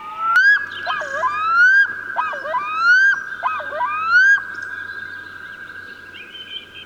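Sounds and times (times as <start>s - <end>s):
black-throated loon wailing calls: 0.0s - 4.7s.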